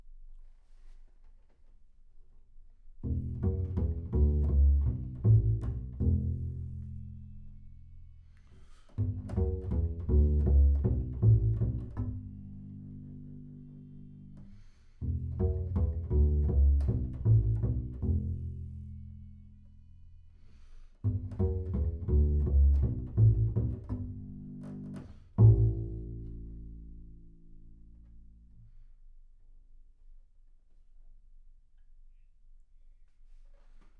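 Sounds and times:
bass sound: 0:03.0 - 0:08.3, 0:09.0 - 0:20.3, 0:21.0 - 0:28.6.

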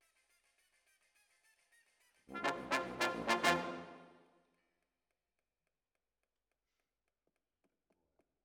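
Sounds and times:
brass instruments: 0:02.3 - 0:04.2.

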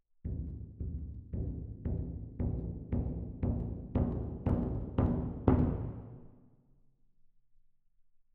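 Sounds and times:
percussion: 0:00.0 - 0:06.2.

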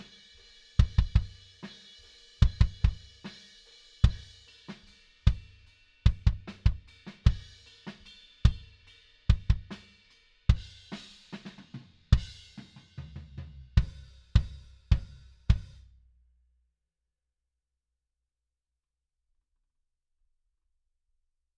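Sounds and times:
kick drum: 0:00.8 - 0:01.3, 0:02.4 - 0:03.0, 0:06.1 - 0:07.5, 0:09.3 - 0:09.7, 0:13.8 - 0:15.8.

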